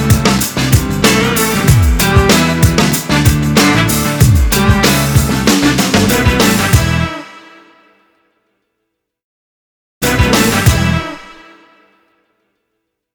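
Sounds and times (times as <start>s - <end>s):
funk beat: 0.0s - 7.1s, 10.0s - 11.2s.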